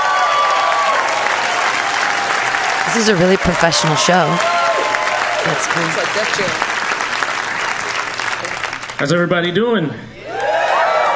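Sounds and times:
comedy club audience cheers and whistles: 0:00.0 - 0:02.8, 0:03.8 - 0:05.5, 0:10.3 - 0:11.1
comedy club audience applause: 0:00.0 - 0:09.2, 0:10.3 - 0:11.1
speech: 0:02.9 - 0:04.6, 0:05.4 - 0:06.7, 0:09.0 - 0:10.1.

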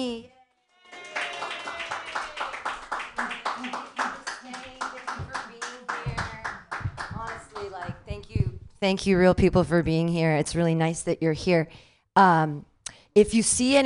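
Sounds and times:
audience clapping hands: 0:00.8 - 0:08.0
speech: 0:08.8 - 0:13.8.

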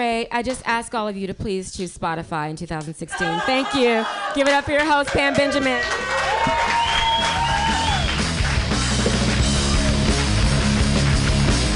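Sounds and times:
speech: 0:00.0 - 0:07.5
audience clapping wildly: 0:04.0 - 0:11.7.

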